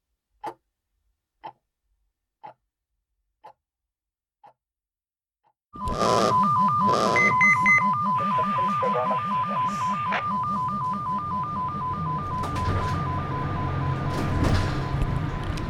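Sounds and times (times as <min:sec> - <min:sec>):
pager beeping: 0:05.8 - 0:15.6.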